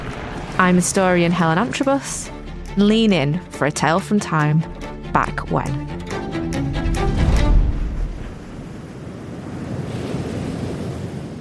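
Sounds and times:
sea waves breaking: 0:00.0 - 0:03.7, 0:06.8 - 0:11.4
speech: 0:00.6 - 0:05.9.

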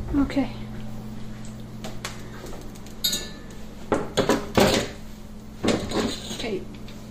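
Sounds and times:
speech: 0:00.1 - 0:00.6
metal barbecue utensils clattering, meat fork, tongs and spatula: 0:03.0 - 0:03.5, 0:05.7 - 0:06.6.

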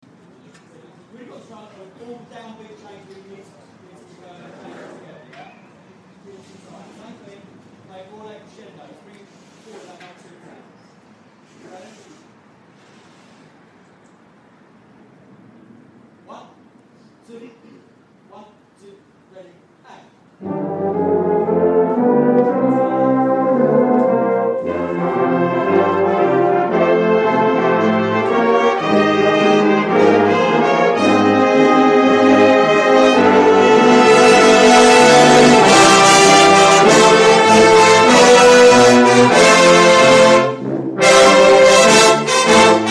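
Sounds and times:
brass music: 0:20.4 - 0:42.8.

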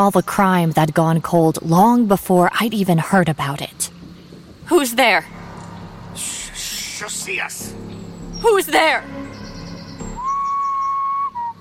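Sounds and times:
speech: 0:00.0 - 0:04.0, 0:04.7 - 0:05.4, 0:06.2 - 0:09.4
single whistle in the woods: 0:10.2 - 0:11.5.

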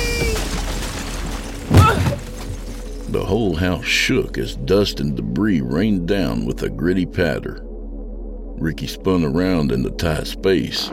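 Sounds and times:
attic door crashing open: 0:00.0 - 0:02.8
body slamming into the floor: 0:00.5 - 0:02.7
speech: 0:03.1 - 0:07.7, 0:08.6 - 0:10.9.

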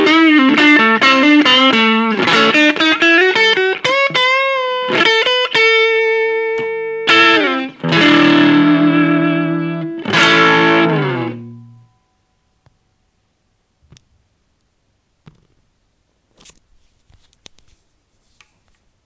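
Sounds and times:
new Strat electric guitar playing: 0:00.0 - 0:12.0.

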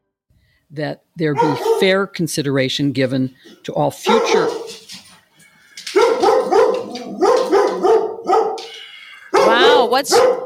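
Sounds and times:
speech: 0:00.7 - 0:04.9, 0:09.9 - 0:10.4
dog barking at the mailman: 0:01.4 - 0:02.0, 0:04.1 - 0:04.9, 0:05.9 - 0:08.7, 0:09.3 - 0:10.4.

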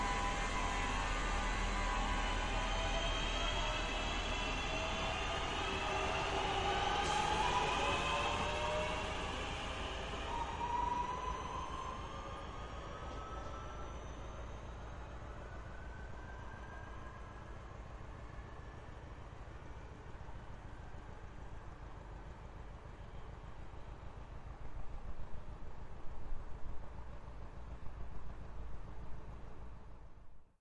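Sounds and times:
trains passing: 0:00.0 - 0:18.4.

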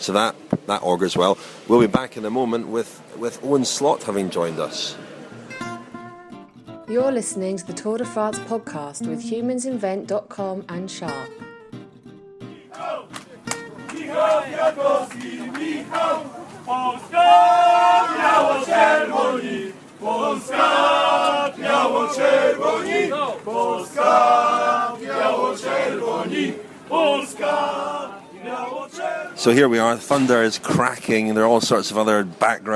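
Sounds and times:
speech: 0:00.0 - 0:05.2, 0:06.9 - 0:11.5, 0:14.1 - 0:32.7
Polish fans singing for a cyclist: 0:12.5 - 0:13.2, 0:13.8 - 0:29.5.

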